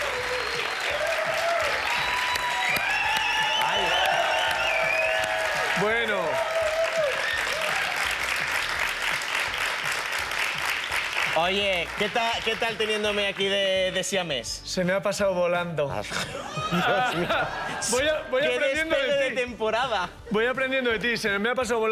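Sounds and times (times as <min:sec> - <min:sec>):
audience cheers and whoops: 0:00.0 - 0:08.4
audience applause: 0:00.0 - 0:13.7
speech: 0:11.4 - 0:21.8
laughter: 0:16.0 - 0:19.3.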